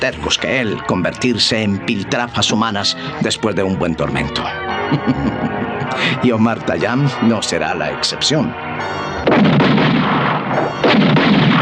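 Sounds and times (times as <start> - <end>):
speech: 0.0 - 9.6
laughter: 4.8 - 7.2
volley of gunfire at prisoners as a radio drama effect: 9.2 - 11.6.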